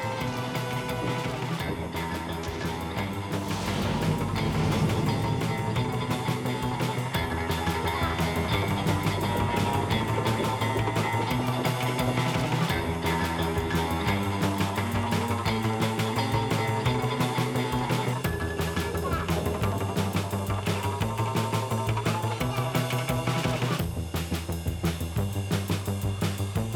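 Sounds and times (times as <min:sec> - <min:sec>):
drums: 0:00.0 - 0:26.7.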